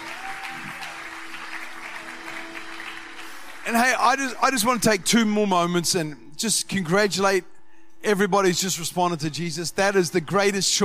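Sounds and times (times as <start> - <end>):
church congregation applauding during a service: 0.0 - 4.8
speech: 3.7 - 10.8.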